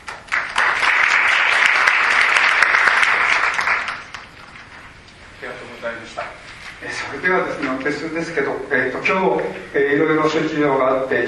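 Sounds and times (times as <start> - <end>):
applause approving a motion: 0.0 - 4.4
speech: 7.2 - 11.2.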